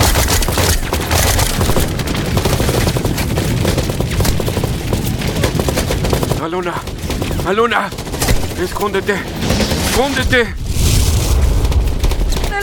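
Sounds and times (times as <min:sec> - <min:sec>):
sustained suppressive gunfire: 0:00.0 - 0:12.6
speech: 0:06.5 - 0:06.9, 0:07.5 - 0:08.0, 0:08.6 - 0:09.4, 0:10.0 - 0:10.6.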